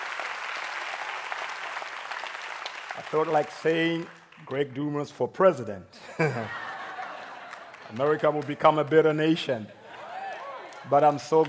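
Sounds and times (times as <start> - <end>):
audience clapping: 0.0 - 5.0, 6.7 - 9.3, 10.1 - 11.4
speech: 3.0 - 6.7, 7.9 - 9.8, 10.8 - 11.4
laughter: 6.0 - 8.6.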